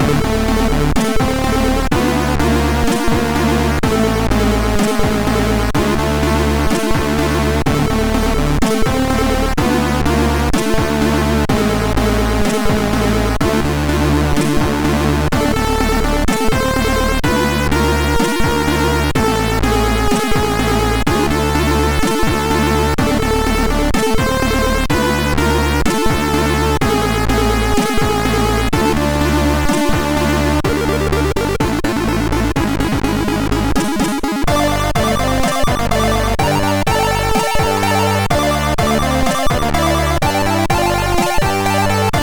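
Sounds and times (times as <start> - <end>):
MOS6581R3 SID chip race music: 0.0 - 42.2.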